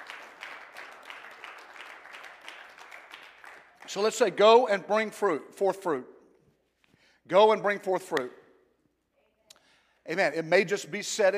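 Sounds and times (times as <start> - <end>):
audience clapping: 0.0 - 4.6
speech: 3.9 - 6.2, 7.3 - 8.4, 10.1 - 11.3.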